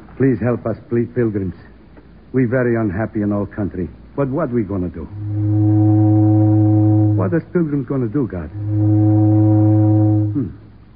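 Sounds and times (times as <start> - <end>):
speech: 0.2 - 1.7, 2.3 - 5.5, 7.2 - 9.1, 10.3 - 10.6
steamboat whistle: 5.1 - 7.4, 8.5 - 10.7.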